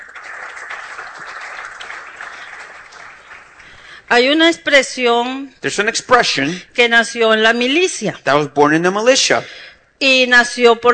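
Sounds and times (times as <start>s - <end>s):
crowd applause: 0.0s - 3.9s
speech: 4.1s - 10.9s.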